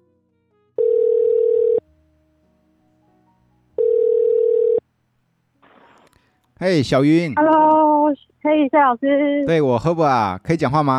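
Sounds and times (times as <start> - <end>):
telephone dial tone beeps while placing a call: 0.8 - 1.8, 3.8 - 4.8
speech: 6.6 - 10.9.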